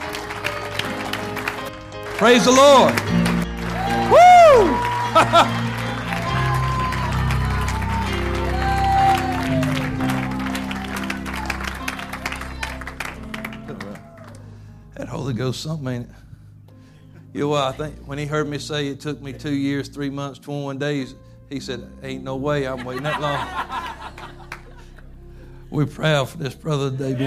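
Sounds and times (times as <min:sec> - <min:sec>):
audience hand clapping and shouting: 0:00.0 - 0:14.5
speech: 0:02.2 - 0:03.2, 0:04.1 - 0:05.6, 0:15.3 - 0:16.2, 0:17.4 - 0:23.8, 0:25.7 - 0:27.2
laughter: 0:03.8 - 0:07.6, 0:22.6 - 0:25.1.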